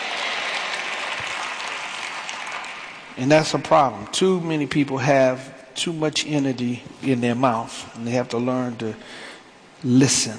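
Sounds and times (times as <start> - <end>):
audience clapping: 0.0 - 3.7
speech: 3.2 - 10.3.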